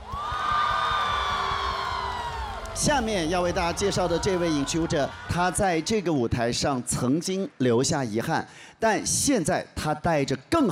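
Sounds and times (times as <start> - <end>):
high sustained whoops: 0.0 - 5.9
audience cheering and clapping for a dancer at a televised stage show: 0.0 - 6.5
speech: 2.8 - 10.6.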